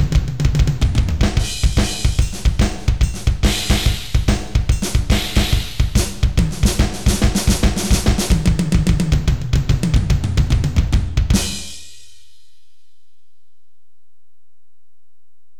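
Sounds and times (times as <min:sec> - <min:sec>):
drums: 0:00.0 - 0:12.5.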